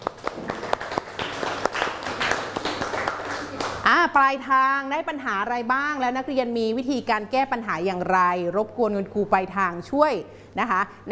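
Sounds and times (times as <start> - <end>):
classroom applause for a student: 0.0 - 3.8
speech: 4.0 - 11.1.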